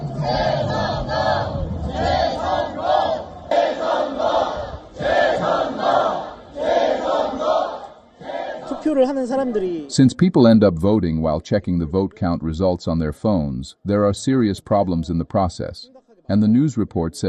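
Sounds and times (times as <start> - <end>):
protesters chanting slogans outside vote-counting stadium: 0.0 - 9.3
speech: 0.2 - 0.7, 9.0 - 17.2.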